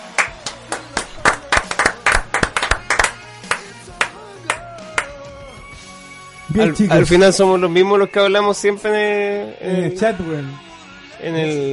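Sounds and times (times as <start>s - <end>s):
applause and clapping: 0.0s - 5.2s
speech: 6.6s - 11.7s.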